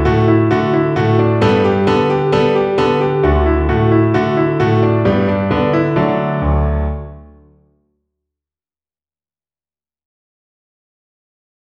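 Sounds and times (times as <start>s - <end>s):
piano accompaniment: 0.0s - 7.8s.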